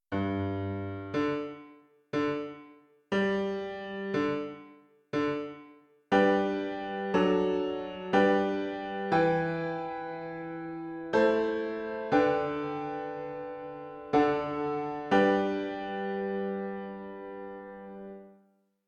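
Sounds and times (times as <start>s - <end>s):
piano: 0.0s - 18.5s.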